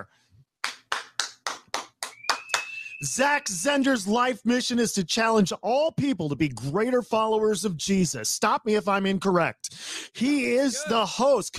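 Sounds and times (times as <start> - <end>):
audience applause for guest: 0.6 - 2.9
speech: 3.0 - 11.5.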